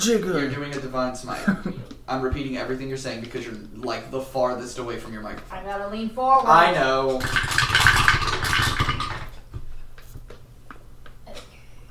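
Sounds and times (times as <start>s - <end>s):
speech: 0.0s - 7.8s
four dice rolling in a dice tower: 7.2s - 9.3s.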